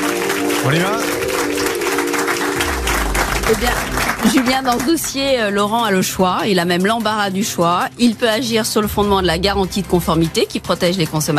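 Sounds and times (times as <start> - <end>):
studio audience applause: 0.0 - 5.6
speech: 0.6 - 1.2, 3.5 - 11.3.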